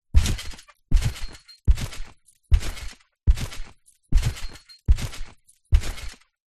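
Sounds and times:
trampoline bounces and jumps heard close up from underneath: 0:00.2 - 0:06.4.

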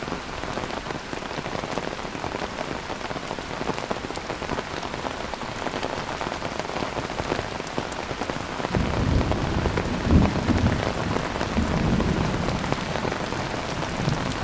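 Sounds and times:
heavy rain on an umbrella in Kuala Lumpur Malaysia: 0:00.0 - 0:14.4
thunder in Kuala Lumpur Malaysia: 0:08.7 - 0:14.4.

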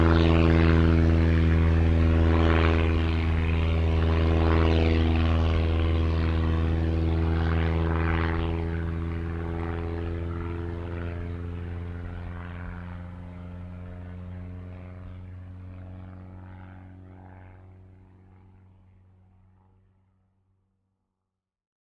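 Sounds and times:
transport aircraft flying by: 0:00.0 - 0:20.0.

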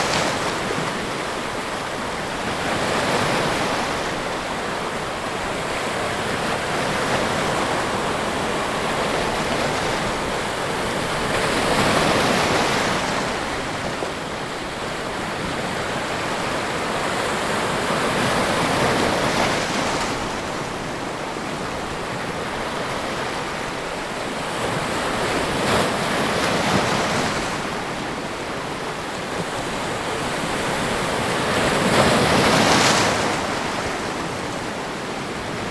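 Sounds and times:
ocean waves on rocks: 0:00.0 - 0:35.7.

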